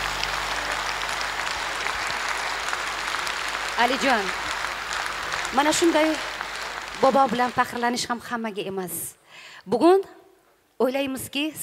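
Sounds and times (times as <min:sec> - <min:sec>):
audience applause after a song performance: 0:00.0 - 0:08.2
speech: 0:03.8 - 0:04.5, 0:05.5 - 0:06.3, 0:07.0 - 0:10.2, 0:10.8 - 0:11.6.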